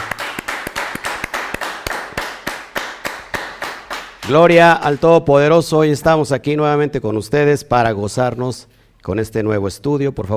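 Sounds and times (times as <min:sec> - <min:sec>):
crowd rhythmic claps: 0:00.0 - 0:05.2
speech: 0:04.3 - 0:10.3.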